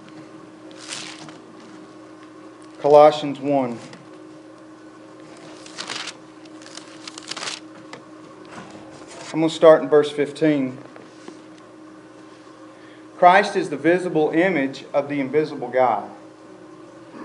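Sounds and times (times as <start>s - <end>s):
Bible pages being flipped: 0.7s - 1.7s, 5.2s - 7.7s
speech: 2.8s - 3.9s, 9.3s - 10.9s, 13.2s - 16.2s.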